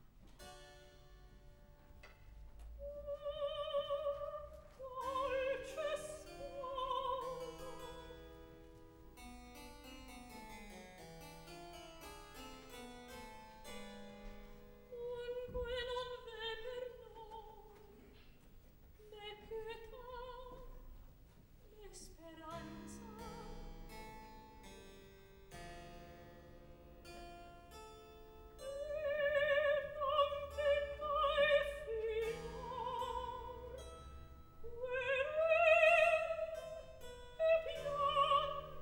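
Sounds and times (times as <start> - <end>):
operatic recitative from a third act: 2.8 - 8.2, 14.9 - 18.0, 21.8 - 23.6, 28.7 - 33.9, 34.6 - 38.7.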